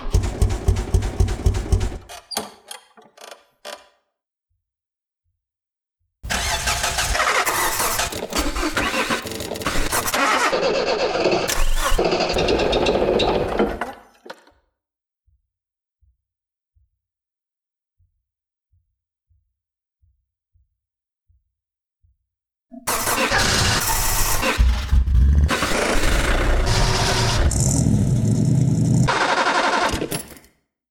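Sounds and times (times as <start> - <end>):
engine: 0.0 - 2.1, 6.3 - 13.8, 22.8 - 30.3.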